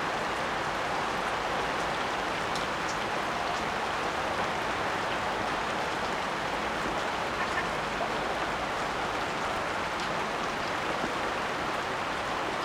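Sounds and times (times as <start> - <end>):
rain in the jungle: 0.0 - 12.6.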